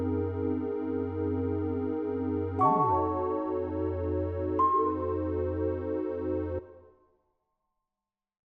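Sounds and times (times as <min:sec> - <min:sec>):
lo-fi music: 0:00.0 - 0:06.6.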